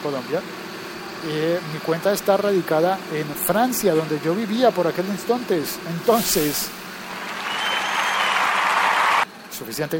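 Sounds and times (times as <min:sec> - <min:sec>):
speech: 0:00.0 - 0:06.8, 0:09.6 - 0:09.9
applause sound effect: 0:07.1 - 0:09.2.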